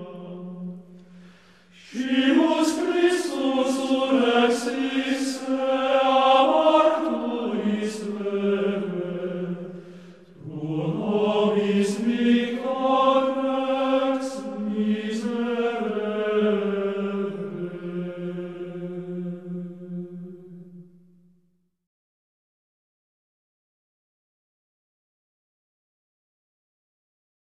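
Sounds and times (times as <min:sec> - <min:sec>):
monophonic liturgical chant: 0:00.0 - 0:21.4.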